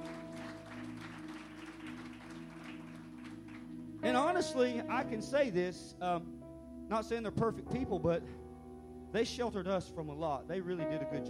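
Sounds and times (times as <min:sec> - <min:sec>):
audience applause: 0:00.0 - 0:03.8
speech: 0:04.0 - 0:08.4, 0:09.1 - 0:11.2.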